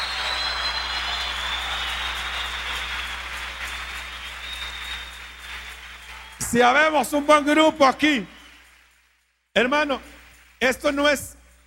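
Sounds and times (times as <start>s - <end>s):
audience applause: 0.0s - 9.0s
speech: 6.5s - 8.3s, 9.6s - 11.6s.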